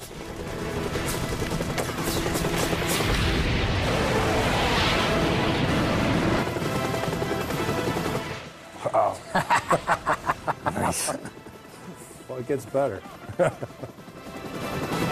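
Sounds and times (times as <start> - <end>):
rapid gunfire: 0.2 - 8.3
deep booming explosions: 2.7 - 6.6
laughter: 9.0 - 11.4, 13.2 - 14.0
speech: 12.4 - 13.8.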